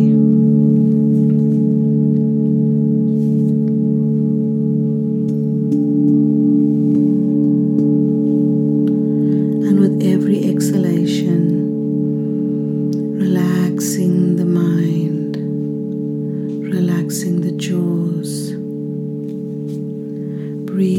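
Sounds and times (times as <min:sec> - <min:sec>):
voice: 0:00.0 - 0:00.2, 0:09.6 - 0:11.7, 0:13.2 - 0:15.4, 0:16.6 - 0:18.6, 0:20.7 - 0:20.9
ancient singing bowls drone: 0:00.0 - 0:20.9.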